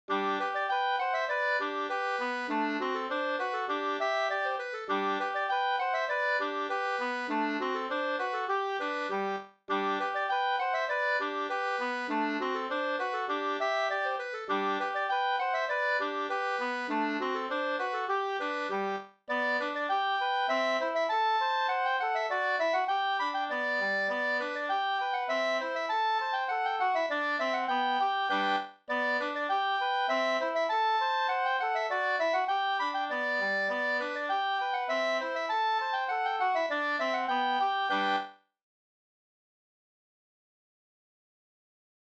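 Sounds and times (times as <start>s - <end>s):
reinlender folk dance music: 0.1s - 38.3s.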